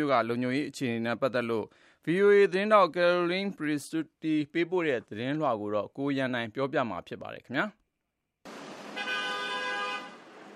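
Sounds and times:
speech: 0:00.0 - 0:07.8
traffic noise hiss on a New York City street: 0:08.5 - 0:10.5
car horn in a traffic jam on a New York City street: 0:08.9 - 0:10.2.

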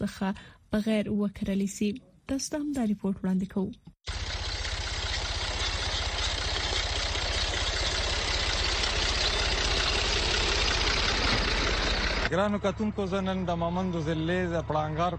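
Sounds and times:
speech: 0:00.0 - 0:04.2, 0:12.3 - 0:15.1
tractor engine running while sowing wheat in a field: 0:04.1 - 0:15.1.

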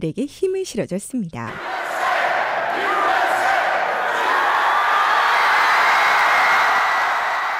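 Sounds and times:
speech: 0:00.0 - 0:01.8
crowd cheering at World Cup final: 0:01.5 - 0:07.5
whoops and yells: 0:04.1 - 0:07.5.

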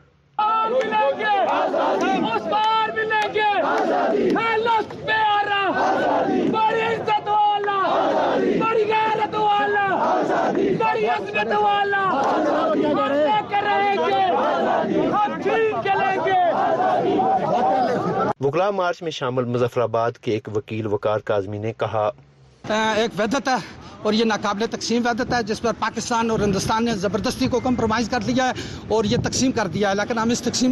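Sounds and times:
lawyers' march crowd chanting slogans against police: 0:00.4 - 0:18.4
speech: 0:18.4 - 0:30.7.

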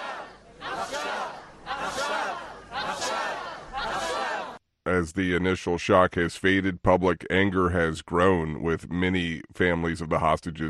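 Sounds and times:
large crowd chanting: 0:00.0 - 0:04.6
speech: 0:04.9 - 0:10.6.

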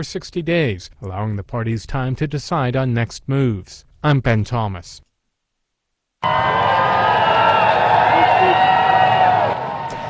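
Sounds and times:
speech: 0:00.0 - 0:05.1, 0:06.2 - 0:07.0
crowd cheering as King Charles III arrived in Berlin: 0:06.2 - 0:10.0.

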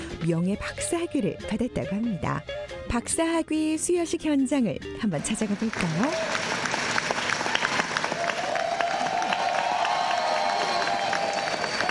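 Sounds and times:
speech: 0:00.2 - 0:06.4
students clapping at ceremony: 0:05.3 - 0:11.9
students cheering and whooping: 0:06.1 - 0:06.5, 0:07.5 - 0:11.9.

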